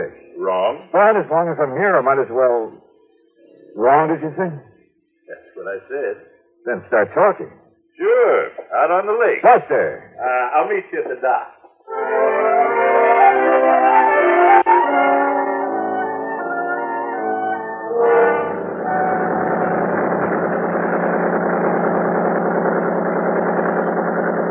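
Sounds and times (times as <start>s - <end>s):
speech: 0.4s - 2.8s, 3.8s - 4.7s, 5.3s - 12.4s
tonal melodic music: 11.9s - 19.8s
boat's outboard motor running: 18.8s - 24.5s.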